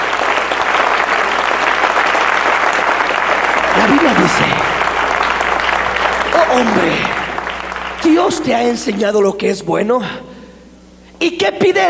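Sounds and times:
audience applauding: 0:00.0 - 0:09.3
speech: 0:06.5 - 0:07.1, 0:08.0 - 0:10.3, 0:11.2 - 0:11.8.

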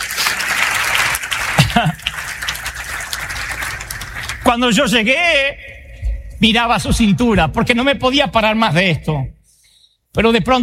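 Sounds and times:
audience applauding: 0:00.0 - 0:05.0
speech: 0:01.8 - 0:02.0, 0:04.5 - 0:05.7, 0:06.4 - 0:09.4, 0:10.1 - 0:10.6.

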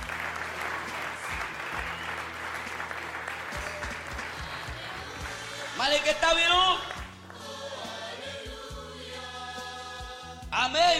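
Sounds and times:
audience clapping hands in offering: 0:00.0 - 0:07.9
speech: 0:05.8 - 0:06.9, 0:10.6 - 0:10.9.

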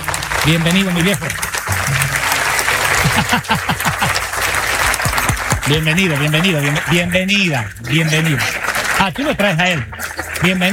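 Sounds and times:
congregation applauding inside a cathedral: 0:00.0 - 0:10.7
speech: 0:00.4 - 0:02.2, 0:03.3 - 0:04.2, 0:05.6 - 0:10.7
laughter: 0:01.8 - 0:10.7.

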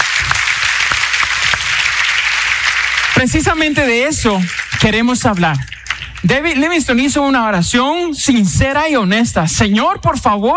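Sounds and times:
crowd applauding: 0:00.0 - 0:07.3
speech: 0:03.2 - 0:10.5.

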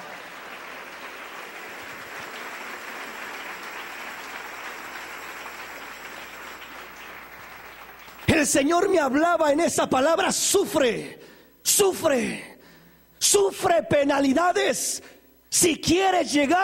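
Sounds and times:
audience applause: 0:00.0 - 0:08.5
speech: 0:08.4 - 0:12.5, 0:13.2 - 0:16.6.

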